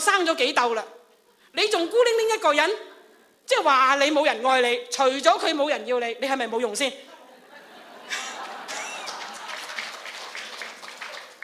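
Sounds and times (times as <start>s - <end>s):
speech: 0.1s - 2.9s, 3.5s - 7.1s
laughter: 7.1s - 11.2s
small crowd clapping: 8.1s - 11.4s.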